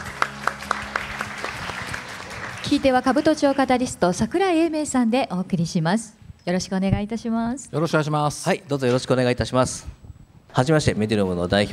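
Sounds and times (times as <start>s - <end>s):
audience applause welcoming a guest: 0.0s - 4.0s
speech: 2.7s - 11.7s.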